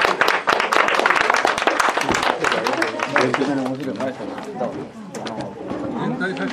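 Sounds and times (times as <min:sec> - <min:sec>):
audience applause: 0:00.0 - 0:04.2
speech: 0:03.2 - 0:05.4, 0:06.2 - 0:06.5.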